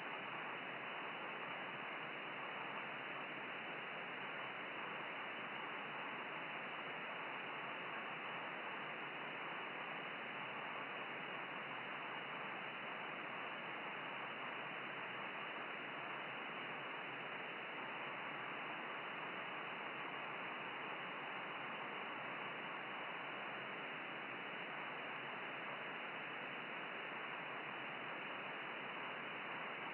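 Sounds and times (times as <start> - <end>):
10 GHz radio rain scatter signal: 0.0 - 29.9.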